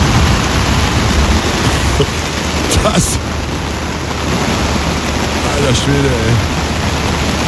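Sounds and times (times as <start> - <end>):
heavy thunderstorm rain drumming on a tent: 0.0 - 7.4
low thunder rumbling: 0.0 - 7.4
speech: 2.9 - 3.4, 5.6 - 6.6.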